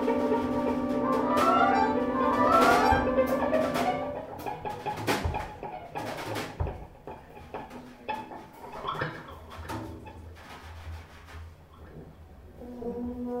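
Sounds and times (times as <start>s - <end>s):
big band: 0.0s - 6.7s.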